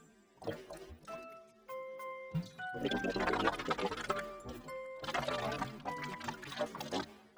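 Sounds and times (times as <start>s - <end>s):
speech: 0.4s - 0.8s, 2.3s - 4.3s
water swishing in mouth: 2.8s - 7.2s.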